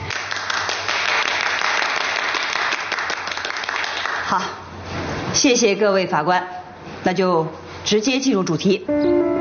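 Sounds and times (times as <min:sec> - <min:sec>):
room full of people applauding: 0:00.0 - 0:04.4
speech: 0:04.3 - 0:04.6, 0:05.4 - 0:09.3.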